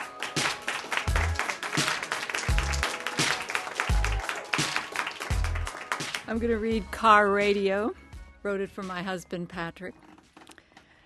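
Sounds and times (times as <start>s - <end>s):
audience applause: 0.0s - 6.3s
speech: 6.3s - 10.1s.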